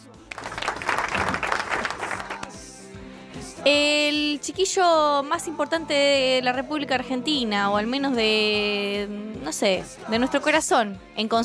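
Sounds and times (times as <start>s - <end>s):
audience applause: 0.3s - 2.6s
speech: 3.6s - 11.4s.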